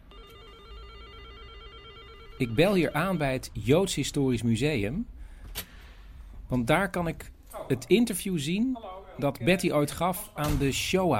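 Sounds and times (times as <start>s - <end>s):
telephone ringing while call is forwarded: 0.0s - 3.6s
speech: 2.4s - 5.7s, 6.5s - 11.1s.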